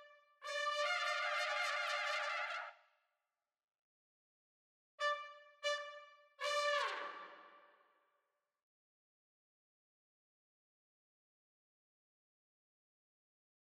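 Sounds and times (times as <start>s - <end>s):
swing trumpet section: 0.5s - 2.7s, 6.4s - 7.5s.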